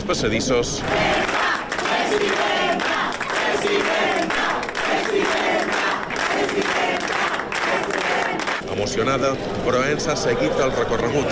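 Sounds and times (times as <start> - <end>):
speech: 0.1 - 1.2, 2.1 - 2.5, 8.7 - 11.3
crowd clapping in ovation: 0.7 - 8.8.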